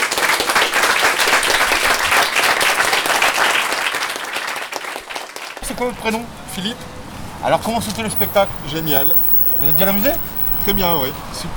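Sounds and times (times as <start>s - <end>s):
audience applause: 0.0s - 5.6s
speech: 5.8s - 11.5s.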